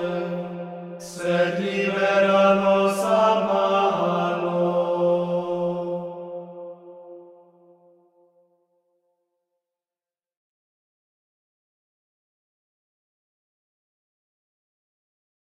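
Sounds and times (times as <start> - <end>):
choir singing Gregorian chant: 0.0 - 7.8.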